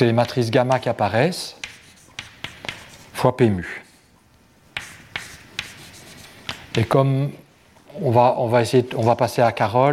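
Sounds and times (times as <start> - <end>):
speech: 0.0 - 1.6, 3.2 - 3.8, 6.8 - 7.4, 8.0 - 9.9
faint steady hiss: 0.0 - 9.9
writing an equation on a board during a physics lecture: 0.2 - 1.0, 1.6 - 3.1, 4.7 - 7.0.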